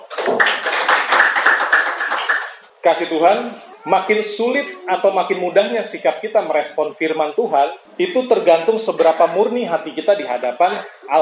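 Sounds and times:
audience applause: 0.0 - 2.7
speech: 2.8 - 11.2.

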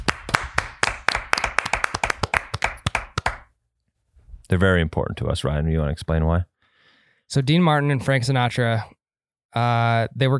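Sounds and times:
quick round of applause: 0.0 - 3.5
speech: 4.5 - 6.5, 7.3 - 10.3.

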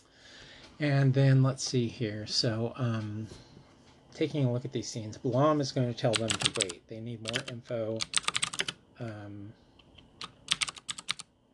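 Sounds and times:
speech: 0.8 - 3.5, 4.2 - 8.2, 9.0 - 9.6
typing on a computer keyboard: 6.1 - 8.8, 10.2 - 11.3.

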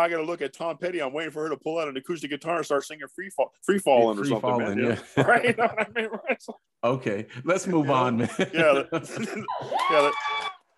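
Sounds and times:
speech: 0.0 - 10.6
laughter: 4.8 - 6.6, 7.6 - 10.2
audience cheering: 9.5 - 10.7
loud high rising whoop: 9.5 - 10.7.

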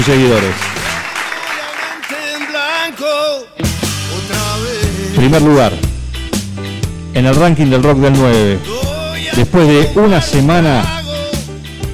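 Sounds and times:
speech: 0.0 - 0.8, 2.9 - 4.4, 5.2 - 5.9, 7.2 - 11.0
audience applause: 0.0 - 3.4.

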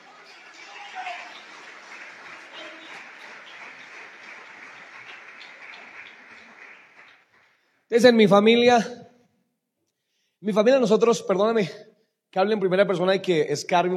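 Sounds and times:
audience applauding loudly: 0.0 - 8.1
speech: 7.9 - 9.0, 10.4 - 13.9.

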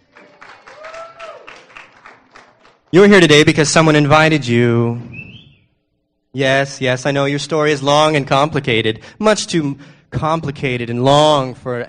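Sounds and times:
audience clapping: 0.0 - 3.1
speech: 2.9 - 5.2, 6.3 - 11.8.

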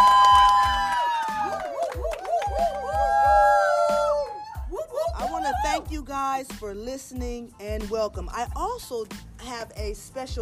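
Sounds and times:
live audience cheering with howling whoops: 0.0 - 5.9
speech: 6.1 - 10.4.

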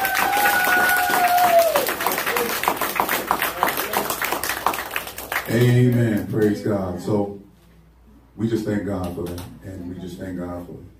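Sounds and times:
audience applause: 0.0 - 6.1
speech: 5.5 - 7.4, 8.4 - 10.9.

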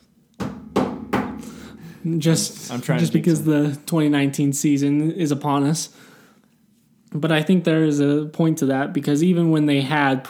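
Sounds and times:
knocking on wood: 0.4 - 1.7
speech: 2.0 - 6.1, 7.1 - 10.2.

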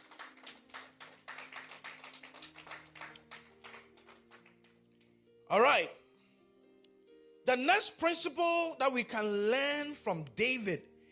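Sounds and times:
audience clapping: 0.0 - 5.1
speech: 5.5 - 6.0, 7.5 - 10.9.

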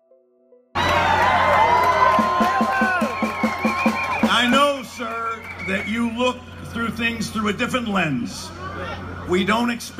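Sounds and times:
large crowd cheering with whoops and shouts: 0.8 - 7.2
speech: 5.7 - 9.9.

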